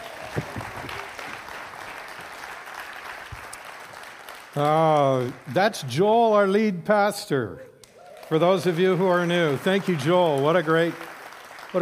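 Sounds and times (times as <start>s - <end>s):
audience clapping: 0.0s - 6.0s, 7.8s - 11.8s
speech: 0.4s - 0.6s, 4.6s - 7.7s, 8.3s - 11.1s.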